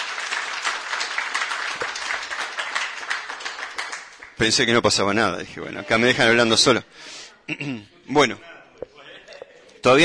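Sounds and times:
audience applause: 0.0 - 4.4
speech: 4.4 - 8.5, 9.8 - 10.0.

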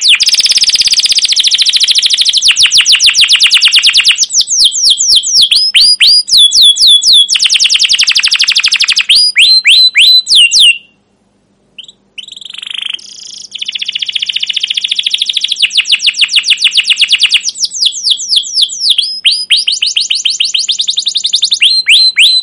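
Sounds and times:
canary singing: 0.0 - 11.1, 11.8 - 22.4.

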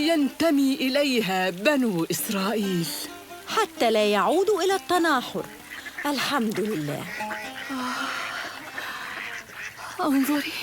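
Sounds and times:
speech: 0.0 - 8.1, 10.0 - 10.6
quail calling: 2.6 - 10.6.

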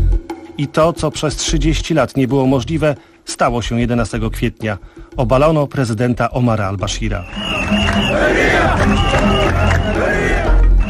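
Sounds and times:
speech: 0.6 - 10.5
large crowd joyfully chanting in unison after the president was overthrown: 7.4 - 10.8.

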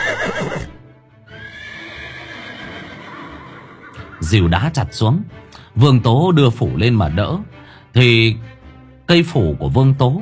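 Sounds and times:
horse whinnying: 0.0 - 4.4
speech: 4.3 - 10.2.

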